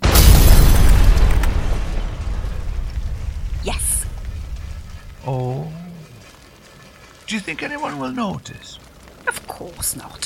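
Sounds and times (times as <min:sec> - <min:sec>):
car bomb explosion: 0:00.0 - 0:03.6
speech: 0:07.3 - 0:08.8, 0:09.6 - 0:10.2.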